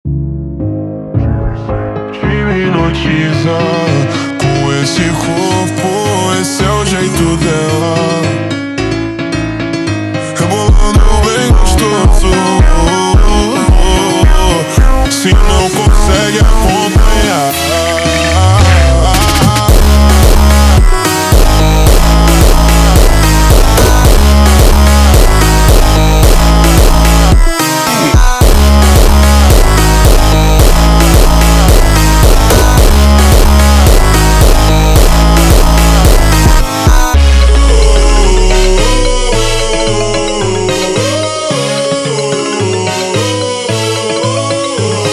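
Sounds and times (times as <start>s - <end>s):
slowed montagem music: 0.0s - 45.1s.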